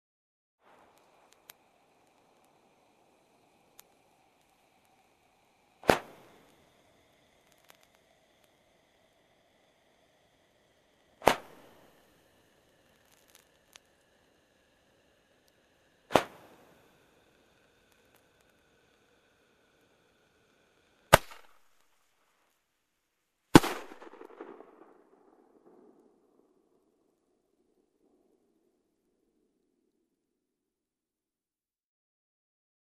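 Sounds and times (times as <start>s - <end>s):
firecrackers being lit: 0.6s - 22.2s, 23.5s - 26.7s.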